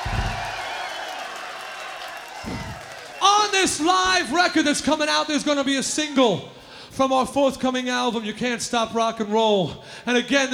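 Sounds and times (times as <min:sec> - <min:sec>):
club audience applauding and cheering at a live show: 0:00.0 - 0:03.8
speech: 0:03.6 - 0:10.5.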